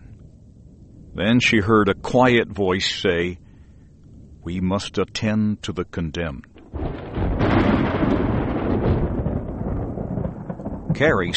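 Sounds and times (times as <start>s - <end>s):
speech: 1.2s - 3.4s, 4.4s - 6.5s, 11.0s - 11.3s
thunder of a sudden storm: 6.6s - 11.3s.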